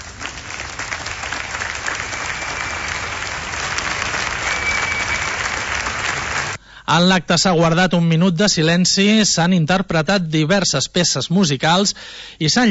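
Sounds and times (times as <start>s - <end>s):
applause at royal entrance: 0.0s - 6.6s
speech: 6.9s - 12.6s.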